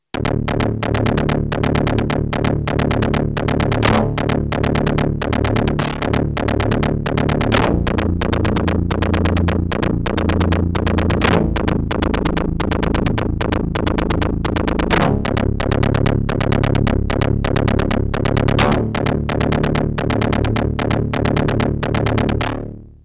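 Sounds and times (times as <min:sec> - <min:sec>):
Yamaha TX81Z FM synthesizer: 0:00.1 - 0:23.0.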